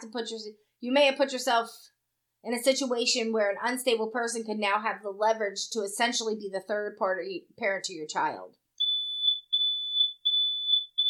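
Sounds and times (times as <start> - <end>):
speech: 0.0 - 8.6
phone alarm beeping: 8.8 - 11.0.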